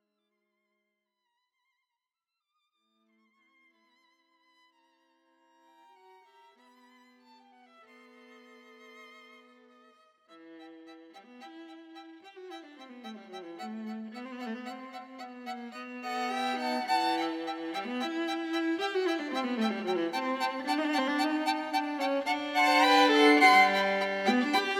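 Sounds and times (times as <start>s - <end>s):
moderately fast instrumental music: 10.6s - 24.7s.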